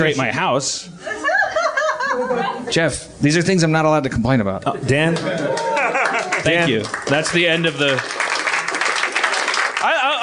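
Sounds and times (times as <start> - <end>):
speech: 0.0 - 1.3, 2.2 - 5.8, 6.4 - 8.2
laughter: 1.0 - 2.7, 5.2 - 6.8
audience applause: 5.1 - 10.2.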